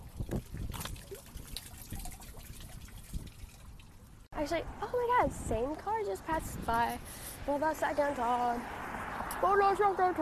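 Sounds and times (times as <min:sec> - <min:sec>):
water trickling down a drain: 0:00.0 - 0:04.3
speech: 0:04.4 - 0:08.8, 0:09.4 - 0:10.1.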